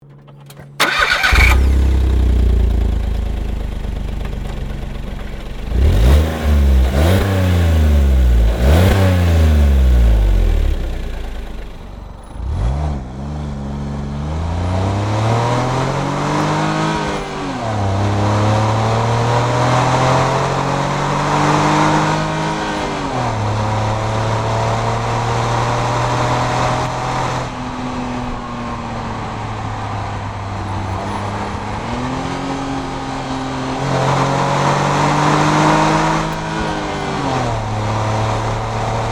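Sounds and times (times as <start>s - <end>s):
Smart Fortwo car: 0.0s - 39.0s.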